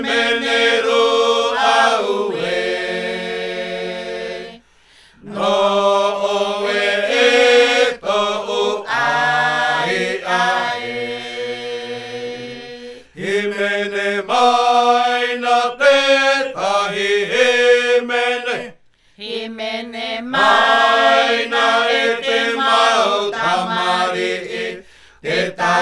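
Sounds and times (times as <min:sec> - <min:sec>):
choir singing old Tahitian hymn: 0:00.0 - 0:25.8.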